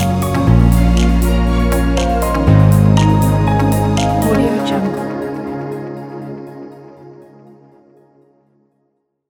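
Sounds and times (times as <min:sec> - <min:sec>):
gentle piano: 0:00.0 - 0:06.8.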